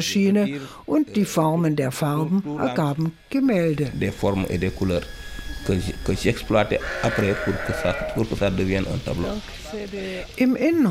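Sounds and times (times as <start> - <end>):
speech: 0.0 - 10.8
sheep bleating: 6.8 - 8.4.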